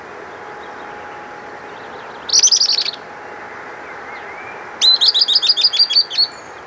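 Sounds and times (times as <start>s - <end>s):
bird chattering calls: 1.7s - 3.0s, 4.1s - 6.6s.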